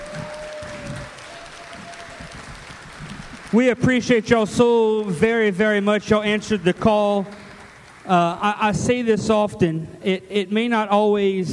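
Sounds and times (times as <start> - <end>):
audience applause: 0.0 - 8.6
speech: 3.5 - 7.4, 8.1 - 11.5.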